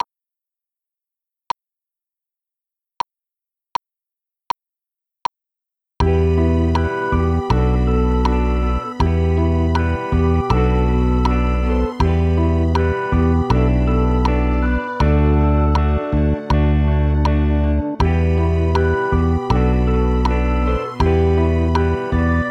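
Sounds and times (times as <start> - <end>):
keyboard: 6.0 - 22.4.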